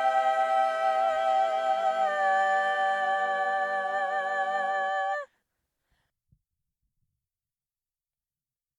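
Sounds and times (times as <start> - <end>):
soprano singing: 0.0 - 5.3.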